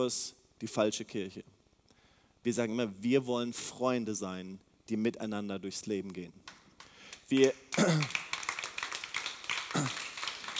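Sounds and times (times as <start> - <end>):
speech: 0.0 - 1.6, 2.4 - 6.6, 7.3 - 8.2, 9.7 - 10.0
audience clapping: 6.4 - 10.5.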